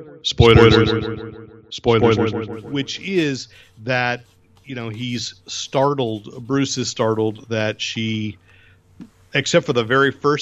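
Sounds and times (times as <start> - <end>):
spoken word with echo effect: 0.0 - 3.5
speech: 0.2 - 8.4, 9.0 - 10.4.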